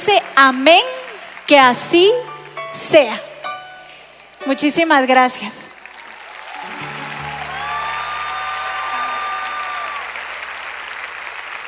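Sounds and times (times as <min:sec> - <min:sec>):
audience applause: 0:00.0 - 0:02.6, 0:05.7 - 0:11.6
speech: 0:00.0 - 0:03.3, 0:04.4 - 0:05.6.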